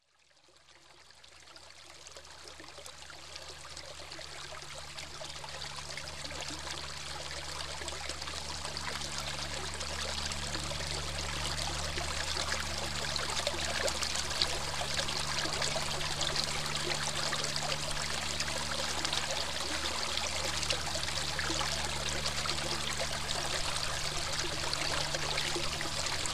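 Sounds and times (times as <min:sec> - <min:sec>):
park waterfall: 0:01.6 - 0:26.3.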